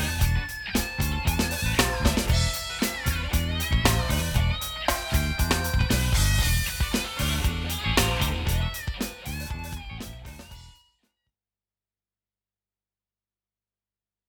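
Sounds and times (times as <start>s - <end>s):
funk music: 0.0s - 10.8s.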